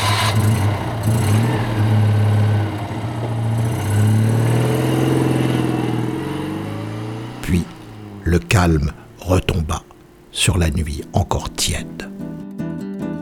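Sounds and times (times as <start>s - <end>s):
Citroën 2CV small engine revving as the car hastily pulls away: 0.0s - 9.2s
speech: 8.6s - 12.1s.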